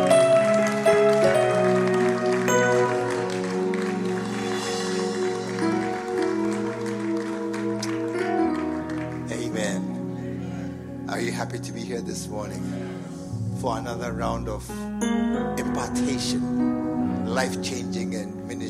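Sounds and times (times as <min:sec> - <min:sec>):
audience clapping: 0:00.0 - 0:10.3
speech: 0:11.6 - 0:12.9, 0:13.6 - 0:18.6.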